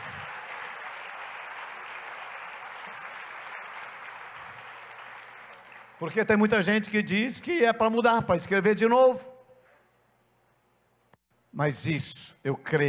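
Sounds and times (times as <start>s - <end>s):
audience applause: 0.0s - 6.4s
speech: 6.0s - 9.4s, 11.6s - 12.8s.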